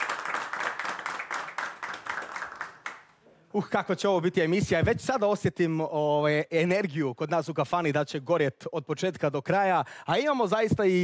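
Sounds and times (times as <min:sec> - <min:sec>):
clapping for performers at a kafana show: 0:00.0 - 0:03.2
speech: 0:03.5 - 0:11.0.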